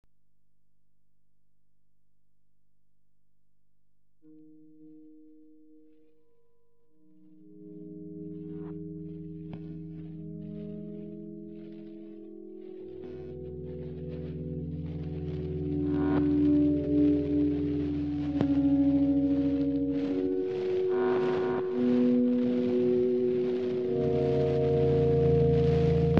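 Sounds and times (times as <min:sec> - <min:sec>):
ocean loop for guitar and cable: 0:07.5 - 0:26.1.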